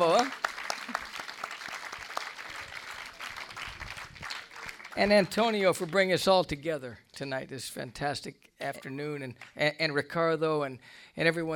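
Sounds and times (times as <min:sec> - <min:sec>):
audience applauding: 0:00.0 - 0:06.0
speech: 0:05.0 - 0:11.5.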